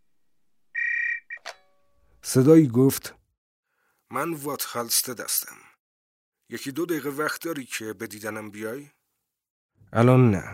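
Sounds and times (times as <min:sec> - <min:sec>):
telephone ringing: 0:00.8 - 0:02.2
speech: 0:02.3 - 0:03.2, 0:04.1 - 0:05.7, 0:06.5 - 0:09.0, 0:09.9 - 0:10.5.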